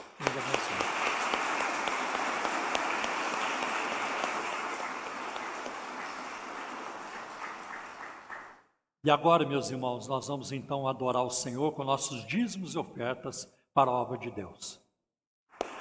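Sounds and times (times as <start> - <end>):
round of applause: 0.0 - 8.7, 15.6 - 15.7
speech: 9.0 - 14.8.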